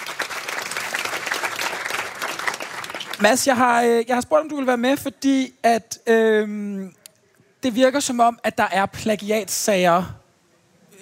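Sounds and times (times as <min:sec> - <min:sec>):
audience applauding a guest walking on stage: 0:00.0 - 0:03.4
speech: 0:03.2 - 0:07.0, 0:07.6 - 0:10.2.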